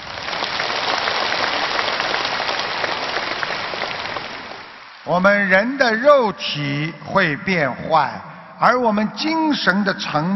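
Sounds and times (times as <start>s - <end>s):
audience applause: 0.0s - 5.1s
speech: 5.1s - 10.3s.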